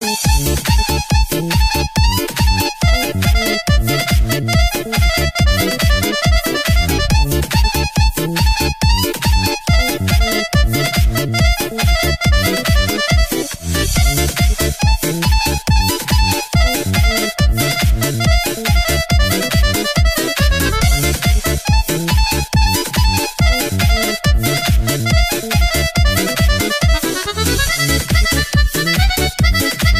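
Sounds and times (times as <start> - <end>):
Balkan kolo folk dance music: 0.0 - 29.9.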